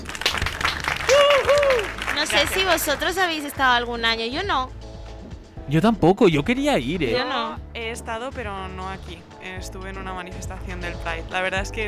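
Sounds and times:
applause: 0.0s - 3.8s
speech: 2.2s - 4.8s, 5.7s - 11.8s.

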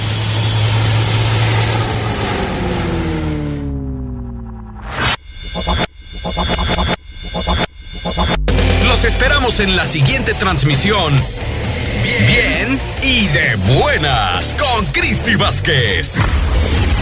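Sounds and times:
airplane taking off, radio sound effect: 0.0s - 5.0s, 8.4s - 16.2s
choppy rhythmic sounds: 5.6s - 16.1s
speech: 9.4s - 11.4s, 12.1s - 16.4s.

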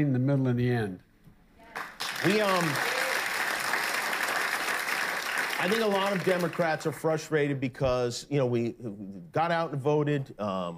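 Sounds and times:
speech: 0.0s - 1.1s, 2.2s - 2.9s, 5.6s - 10.7s
audience clapping: 1.7s - 7.2s.

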